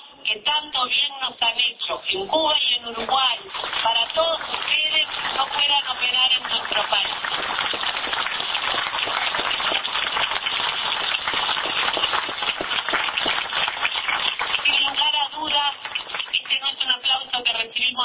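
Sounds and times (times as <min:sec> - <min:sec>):
speech: 0:00.3 - 0:08.0
applause: 0:03.0 - 0:17.4.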